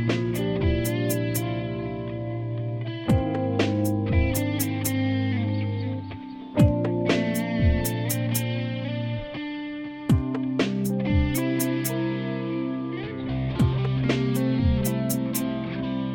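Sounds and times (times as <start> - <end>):
improvised music in 7 4 time: 0.0 - 16.1.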